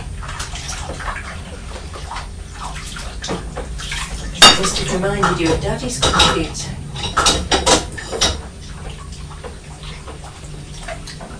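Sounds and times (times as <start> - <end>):
water splashing and sloshing while washing up pots: 0.0 - 11.3
dishes clinking: 4.4 - 8.4
speech: 4.6 - 7.4.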